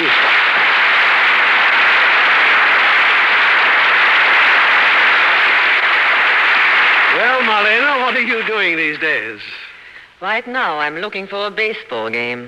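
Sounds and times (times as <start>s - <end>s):
studio audience applause: 0.0s - 9.6s
speech: 8.9s - 9.6s, 10.2s - 12.4s.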